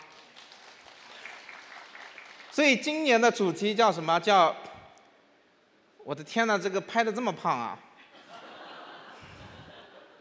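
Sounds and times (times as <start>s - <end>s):
audience applause: 0.0s - 2.5s
speech: 2.6s - 4.7s, 6.1s - 7.9s
laughter: 8.1s - 10.1s.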